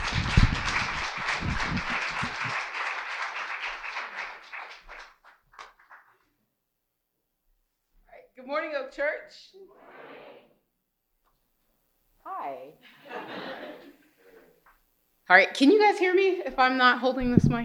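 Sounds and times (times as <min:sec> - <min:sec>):
audience applause: 0:00.0 - 0:06.3
laughter: 0:00.5 - 0:02.8, 0:12.8 - 0:14.6
speech: 0:08.5 - 0:10.0, 0:12.3 - 0:13.7, 0:15.3 - 0:17.6.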